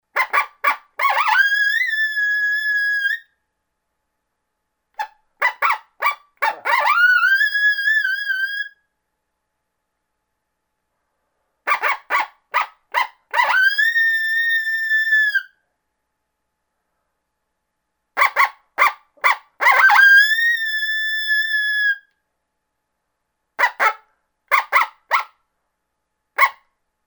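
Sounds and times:
coyote greeting call with barks and howl: 0:00.2 - 0:03.2, 0:05.0 - 0:08.7, 0:11.7 - 0:15.5, 0:18.2 - 0:22.0, 0:23.6 - 0:25.3.

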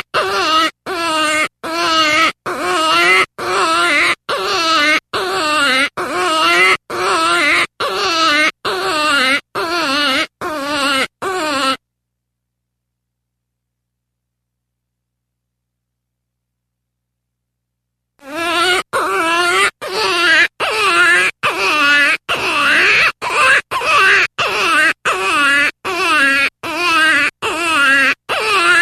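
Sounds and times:
jackrabbit distress screams: 0:00.0 - 0:11.8, 0:18.2 - 0:28.8.

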